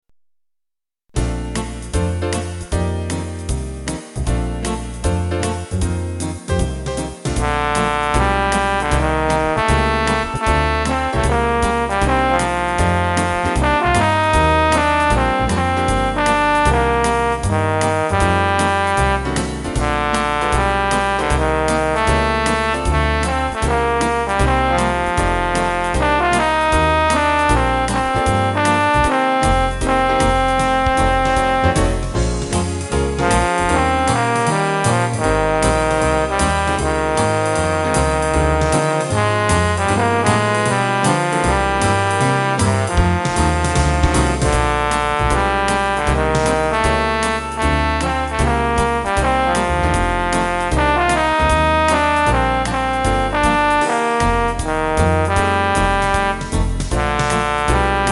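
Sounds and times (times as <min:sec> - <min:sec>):
jazz music: 0:01.1 - 0:58.1.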